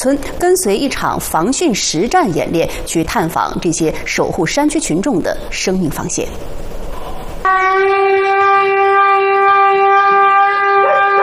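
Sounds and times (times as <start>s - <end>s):
speech: 0.0s - 6.7s
loud steady alarm siren: 7.4s - 11.2s.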